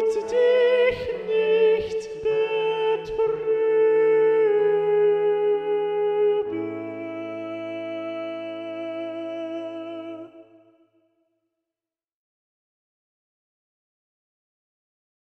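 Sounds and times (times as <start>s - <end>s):
alto voice singing: 0.0s - 10.8s.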